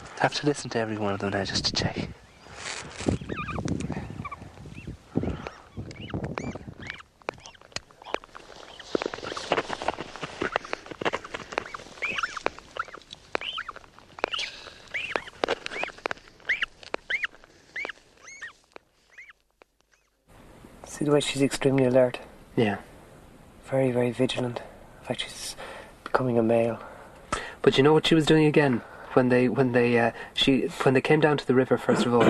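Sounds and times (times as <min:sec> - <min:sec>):
rustling scratchy noise: 0:00.0 - 0:22.8
speech: 0:00.2 - 0:02.2, 0:03.0 - 0:03.4, 0:21.1 - 0:22.9, 0:23.7 - 0:26.9, 0:27.6 - 0:32.2
tiny newly hatched chick shrill chirping cries: 0:03.1 - 0:08.2, 0:11.6 - 0:18.5.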